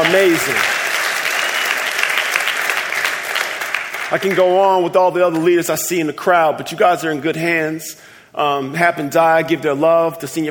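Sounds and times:
crowd applauding: 0.0s - 4.7s
speech: 0.1s - 0.8s, 4.1s - 10.4s.

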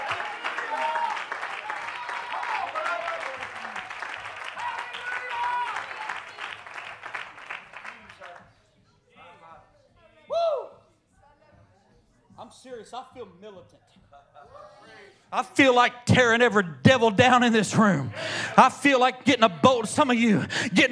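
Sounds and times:
audience clapping hands: 0.0s - 8.5s
speech: 12.6s - 14.2s, 15.0s - 20.9s.

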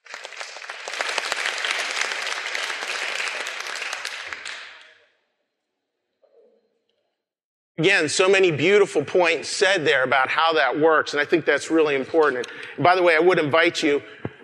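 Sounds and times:
audience applause: 0.0s - 4.9s
speech: 7.8s - 14.2s.

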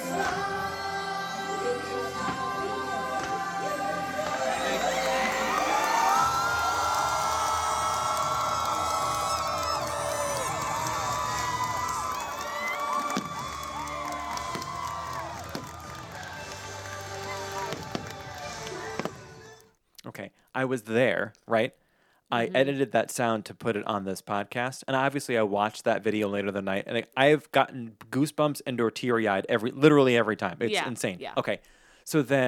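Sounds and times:
crowd cheering as firework show begins: 0.1s - 19.6s
high-pitched screams: 4.1s - 19.6s
firework pops and bangs: 4.2s - 19.4s
speech: 20.6s - 32.4s.

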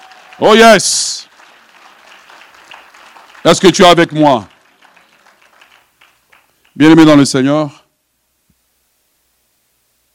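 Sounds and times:
audience applauding: 0.0s - 6.9s
speech: 0.4s - 1.1s, 3.4s - 4.5s, 6.8s - 7.8s.

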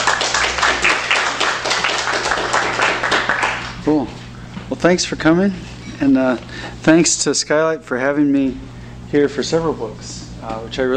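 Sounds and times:
audience applause welcoming an author at a bookstore reading: 0.0s - 3.7s
speech: 3.9s - 4.2s, 4.8s - 10.9s.

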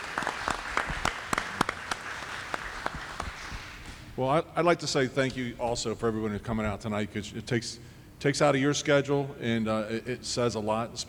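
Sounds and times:
audience applause: 0.0s - 4.0s
speech: 4.2s - 11.0s.

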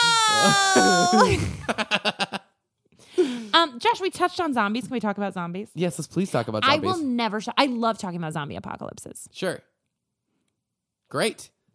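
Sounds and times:
person vocally imitating a wailing Victorian child: 0.0s - 1.4s
laughter: 0.2s - 2.5s
speech: 0.4s - 2.4s, 3.3s - 9.7s, 11.1s - 11.6s.

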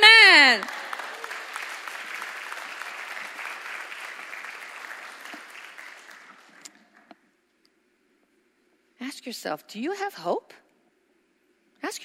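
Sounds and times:
audience clapping: 0.0s - 7.1s
speech: 9.2s - 10.6s.

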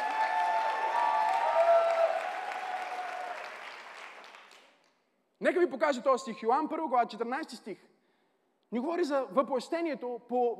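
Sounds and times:
audience applause: 0.0s - 4.7s
speech: 5.4s - 7.9s, 8.7s - 10.5s.

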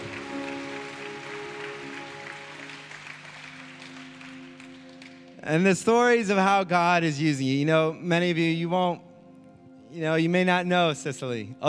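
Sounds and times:
audience clapping: 0.0s - 5.5s
speech: 5.4s - 9.1s, 9.9s - 11.6s.

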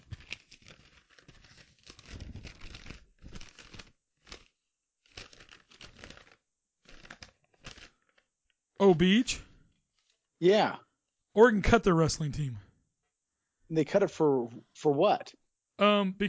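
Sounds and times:
paper notes being shuffled: 0.0s - 8.3s
speech: 8.8s - 9.5s, 10.4s - 10.8s, 11.4s - 12.6s, 13.7s - 16.2s.

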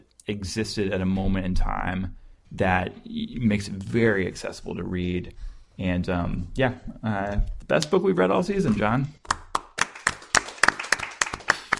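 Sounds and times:
speech: 0.2s - 9.4s
small group clapping: 9.2s - 11.7s.

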